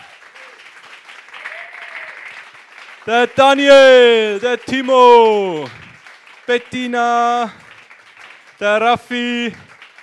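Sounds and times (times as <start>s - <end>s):
audience applause welcoming guests onto a stage: 0.0s - 10.0s
speech: 3.1s - 5.8s, 6.5s - 7.6s, 8.6s - 9.7s.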